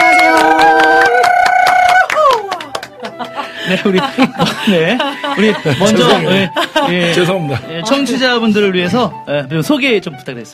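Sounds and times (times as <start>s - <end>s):
audience clapping to welcome a missionary worship singer at a church gathering: 0.0s - 3.9s
laughter: 2.6s - 7.7s
speech: 3.7s - 10.5s.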